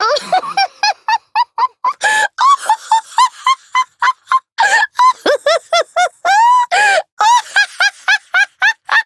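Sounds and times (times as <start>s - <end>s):
person laughing: 0.0s - 9.0s.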